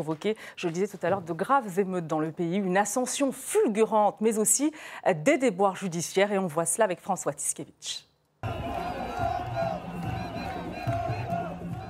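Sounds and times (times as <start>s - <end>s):
speech: 0.0s - 8.6s
crowd chanting a name: 8.4s - 11.8s.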